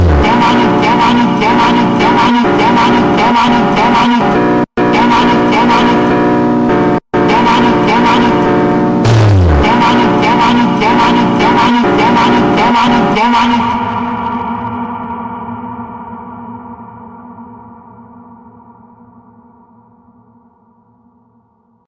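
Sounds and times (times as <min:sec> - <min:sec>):
phonk music: 0:00.0 - 0:14.9.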